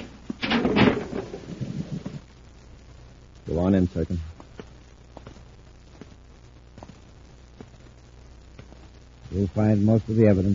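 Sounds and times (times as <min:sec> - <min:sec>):
low uneven rumbling and clunks: 0:00.0 - 0:02.3
heavy concealed door grinding and sliding open: 0:00.4 - 0:02.2
speech: 0:03.5 - 0:04.3, 0:09.4 - 0:10.5.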